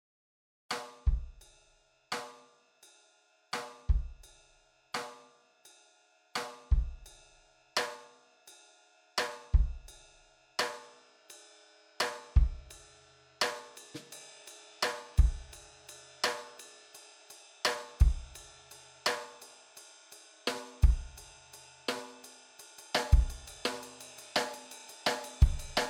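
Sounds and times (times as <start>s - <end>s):
AIR Strike BritPop drum kit: 0.7s - 2.4s, 3.6s - 4.4s, 5.0s - 5.2s, 6.4s - 7.2s, 7.8s - 8.1s, 9.2s - 10.0s, 10.6s - 11.0s, 12.0s - 12.8s, 13.4s - 25.8s.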